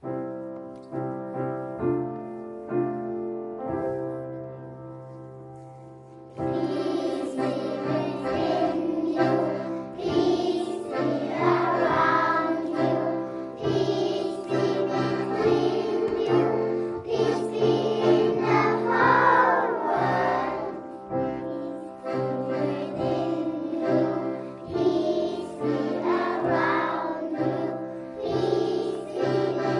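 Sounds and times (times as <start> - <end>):
children's song on piano: 0.0 - 29.7.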